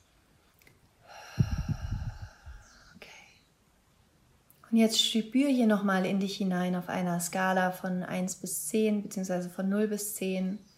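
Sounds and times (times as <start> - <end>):
deep breath in and out during a guided relaxation exercise: 1.0 - 3.3
speech: 4.7 - 10.7.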